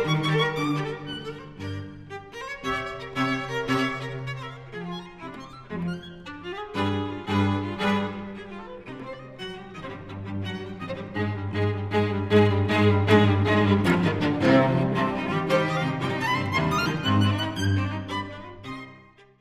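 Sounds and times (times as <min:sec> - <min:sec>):
string trio playing: 0:00.0 - 0:19.4.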